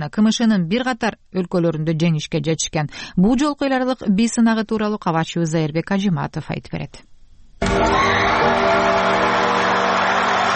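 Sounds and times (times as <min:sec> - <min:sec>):
speech: 0:00.0 - 0:08.2
audience and judges cheering after a dance group's performance at Asia's Got Talent in Malaysia: 0:07.6 - 0:10.5.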